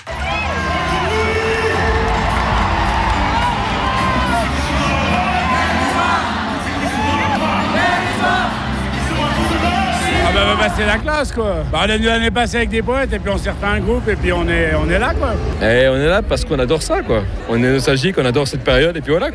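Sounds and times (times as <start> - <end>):
big concert crowd cheering and screaming: 0.0 - 11.1
speech: 10.6 - 19.3.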